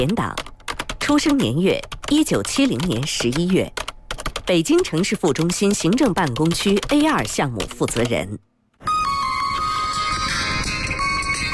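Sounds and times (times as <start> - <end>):
speech: 0.0 - 0.5, 1.1 - 3.8, 4.5 - 9.0
mobile phone ringing: 8.8 - 11.5.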